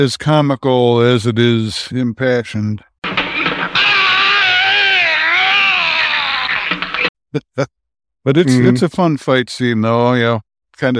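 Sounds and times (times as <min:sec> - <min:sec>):
speech: 0:00.0 - 0:02.9, 0:07.3 - 0:10.9
voice imitating a strangled scream: 0:03.8 - 0:07.0.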